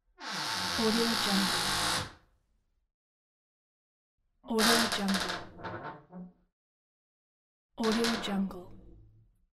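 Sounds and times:
creaky doors: 0.2s - 2.2s, 4.5s - 6.4s, 7.8s - 8.4s.

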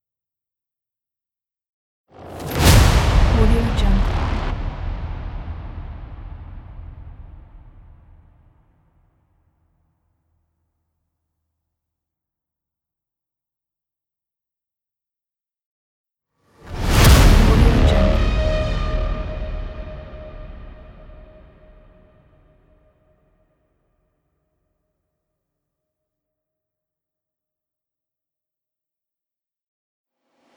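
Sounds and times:
trailer impacts: 2.2s - 8.6s, 16.7s - 22.3s.

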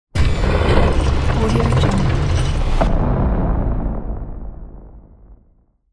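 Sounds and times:
huge gate: 0.1s - 4.0s.

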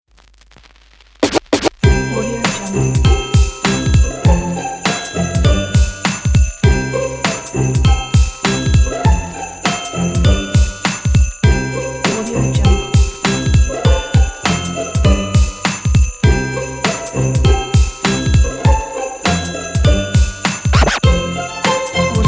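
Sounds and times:
modern Christmas holiday hip hop music: 1.2s - 22.2s.

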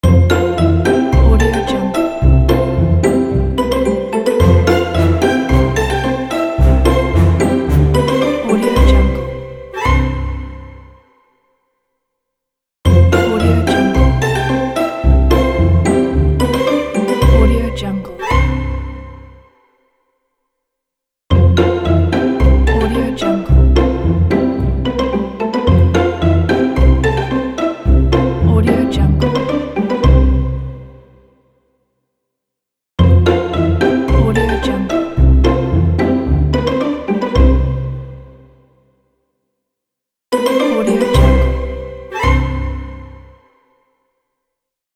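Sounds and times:
funny kids show opener music: 0.0s - 11.0s, 12.9s - 19.4s, 21.3s - 31.2s, 33.0s - 38.6s, 40.4s - 43.4s.

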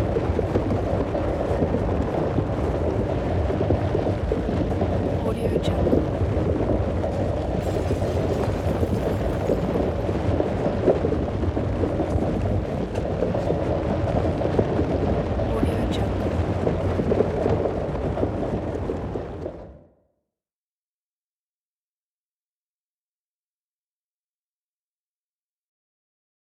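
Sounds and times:
earthquake rumble: 0.0s - 20.0s.

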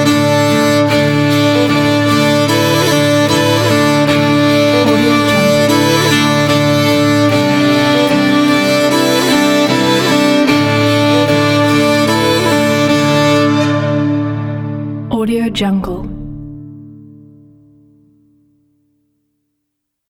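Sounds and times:
country violin song: 0.0s - 15.0s.

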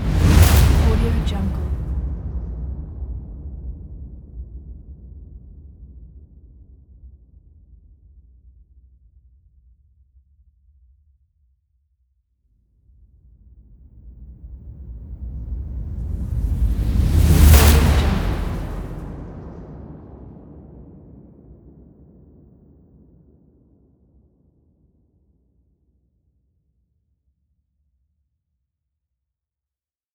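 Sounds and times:
cinematic swoosh: 0.0s - 1.9s, 16.2s - 19.6s.

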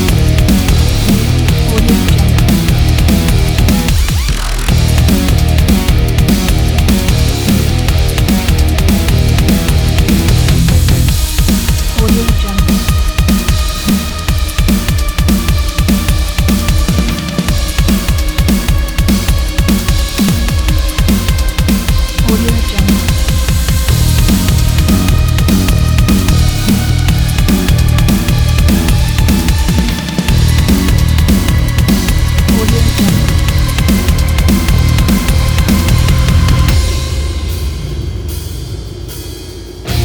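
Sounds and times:
dark electronic dubstep metal: 0.0s - 37.7s.

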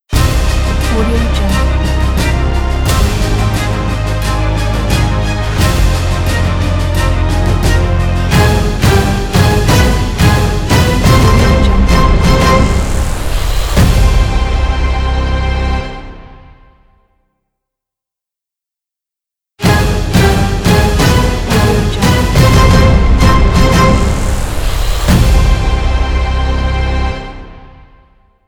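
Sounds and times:
epic cinematic trailer intro music: 0.1s - 17.0s, 19.6s - 28.3s.

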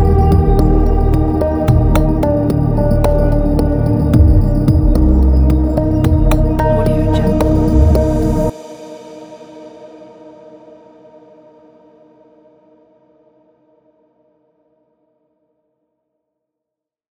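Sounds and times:
lofi atmospheric background music loop: 0.0s - 8.5s.

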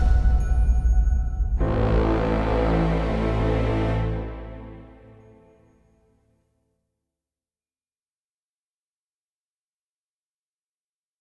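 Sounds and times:
epic music: 0.0s - 5.9s.

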